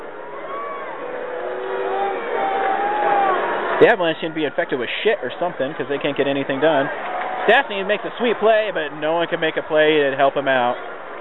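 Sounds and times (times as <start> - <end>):
hockey arena crowd reacting with displeasure: 0.0 - 8.8
speech: 3.8 - 10.9.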